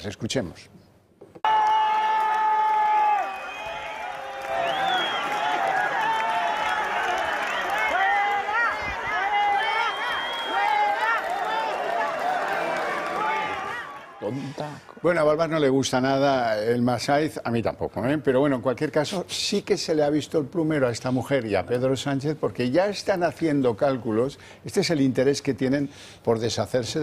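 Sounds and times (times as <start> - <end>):
speech: 0.0 - 0.8, 14.3 - 27.0
crowd shouting: 1.4 - 14.6.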